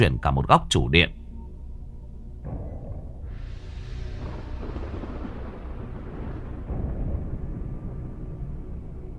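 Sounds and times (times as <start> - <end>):
speech: 0.0 - 1.2
thunder strike sound effect: 3.2 - 9.0.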